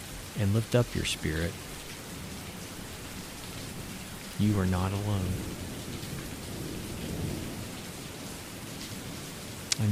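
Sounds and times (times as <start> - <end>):
steady dense rainfall: 0.0 - 9.9
speech: 0.4 - 1.7, 4.4 - 5.6, 9.8 - 9.9
low thunder rumble: 2.2 - 8.2.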